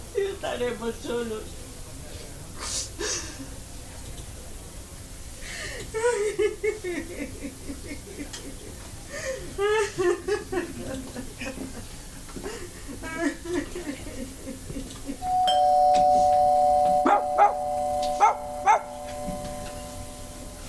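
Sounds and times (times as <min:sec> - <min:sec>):
speech: 0:00.4 - 0:01.6, 0:05.9 - 0:11.9
laughter: 0:05.9 - 0:15.4
electronic doorbell chime: 0:15.2 - 0:20.6
dog yipping and barking: 0:17.0 - 0:19.2.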